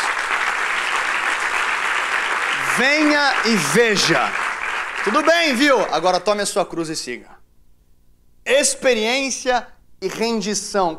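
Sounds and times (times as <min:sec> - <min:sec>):
audience applause: 0:00.0 - 0:05.9
speech: 0:02.8 - 0:04.4, 0:05.0 - 0:07.3, 0:08.5 - 0:10.9.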